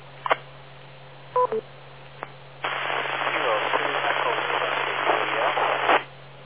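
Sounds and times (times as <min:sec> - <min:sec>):
very weak, noisy amateur radio signal: 0:02.6 - 0:06.1.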